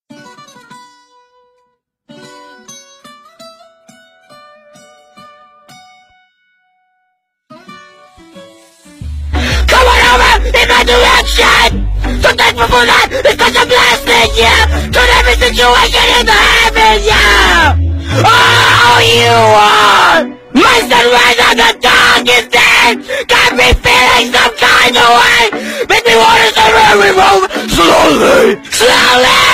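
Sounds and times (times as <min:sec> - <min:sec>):
distorted loud audio: 0:09.0 - 0:29.5.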